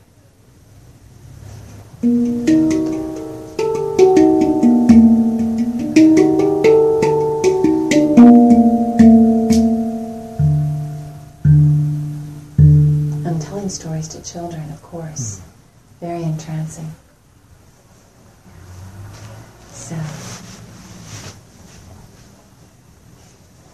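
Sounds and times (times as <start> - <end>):
speech: 2.0 - 2.3, 14.2 - 17.0
Swiss hand-played steel hang drum from Bern playing a scale: 2.0 - 13.8.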